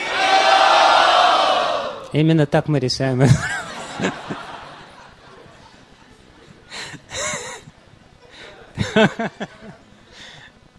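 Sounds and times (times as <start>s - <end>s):
crowd loudly shouting a chant: 0.0s - 2.0s
speech: 2.1s - 4.4s, 9.0s - 9.8s
laughter: 3.2s - 9.9s.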